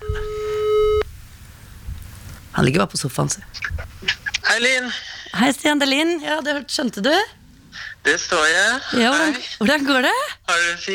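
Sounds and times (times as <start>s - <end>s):
telephone call tone over a speakerphone: 0.0s - 1.0s
speech: 2.6s - 7.4s, 8.0s - 10.9s.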